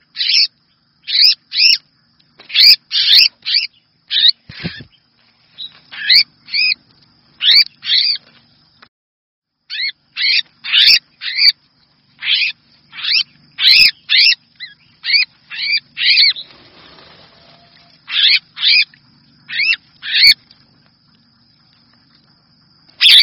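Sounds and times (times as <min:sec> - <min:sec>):
red-whiskered bulbul distress call: 0:02.5 - 0:06.8, 0:07.4 - 0:08.2, 0:09.7 - 0:11.6, 0:12.2 - 0:18.9, 0:19.5 - 0:20.4, 0:23.0 - 0:23.2.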